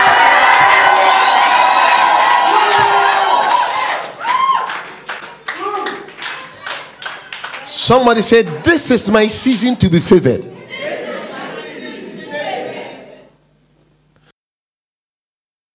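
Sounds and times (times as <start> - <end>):
scattered clapping: 0.0 - 8.9
audience shouting and cheering: 0.0 - 9.3, 10.4 - 13.3
speech: 7.9 - 10.6.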